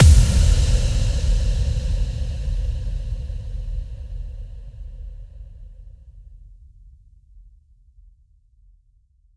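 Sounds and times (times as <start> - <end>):
impact: 0.0 - 5.6.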